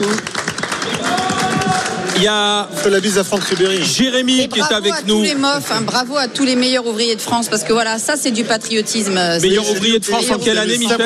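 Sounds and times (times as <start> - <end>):
studio group clapping: 0.0 - 4.8
speech: 2.2 - 11.0.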